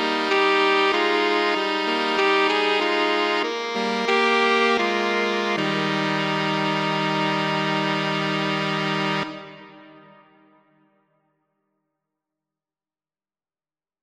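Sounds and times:
saxophone trio: 0.0s - 10.5s.

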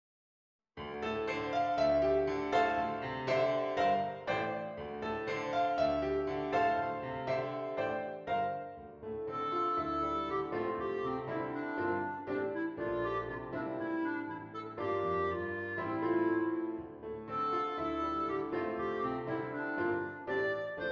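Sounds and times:
clarinet: 0.9s - 20.8s.

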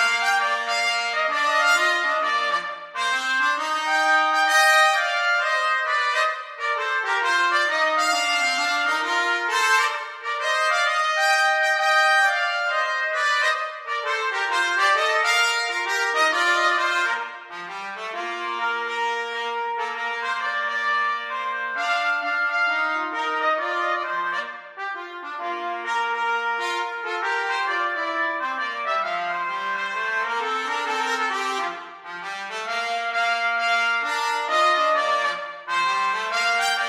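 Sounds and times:
jazz trumpet duet: 0.0s - 36.8s.

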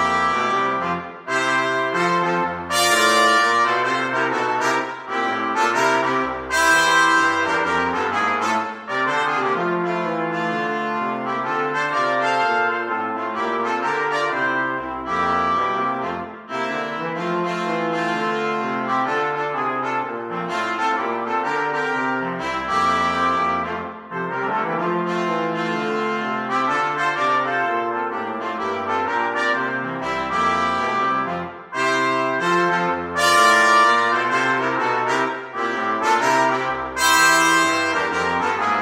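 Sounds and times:
brass quartet playing: 0.0s - 38.8s.

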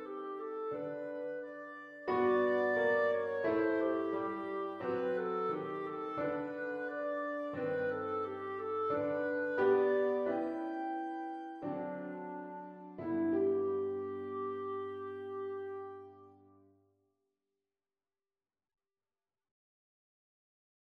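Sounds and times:
clarinet: 0.0s - 16.6s
piano: 0.0s - 16.6s.

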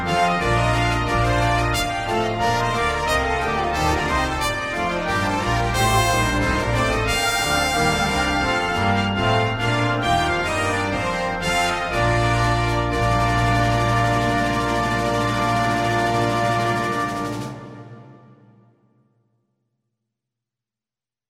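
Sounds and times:
concert band playing a Christmas carol: 0.0s - 18.1s.

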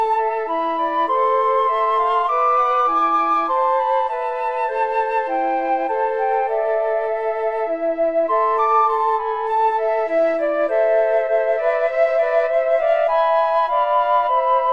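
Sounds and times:
flute trio: 0.0s - 14.7s.

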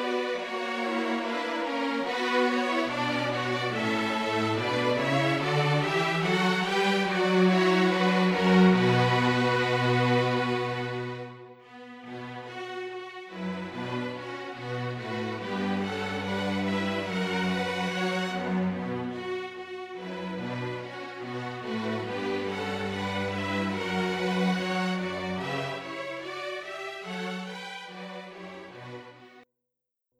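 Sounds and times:
string quartet playing carols: 0.0s - 29.4s.

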